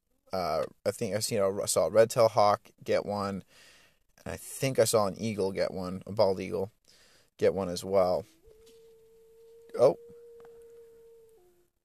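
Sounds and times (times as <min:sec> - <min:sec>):
speech: 0:00.3 - 0:06.8, 0:07.4 - 0:08.4, 0:09.8 - 0:10.0
dog howling: 0:08.2 - 0:11.7.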